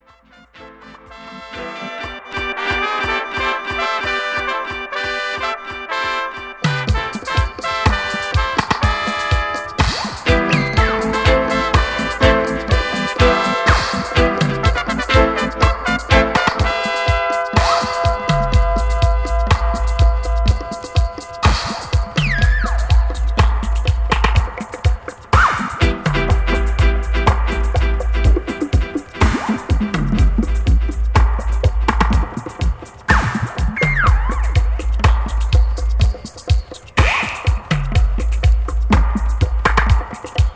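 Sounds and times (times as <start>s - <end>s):
dub trumpet: 0.0s - 40.5s.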